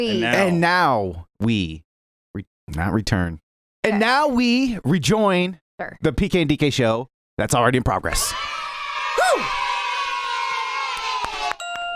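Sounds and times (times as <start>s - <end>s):
speech: 0.0s - 8.4s
whoop: 8.2s - 11.6s
crowd cheering and applauding: 8.3s - 11.9s.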